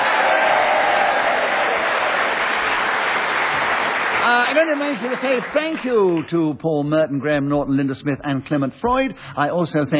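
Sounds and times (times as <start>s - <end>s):
audience round of applause: 0.0s - 6.3s
speech: 4.4s - 9.9s.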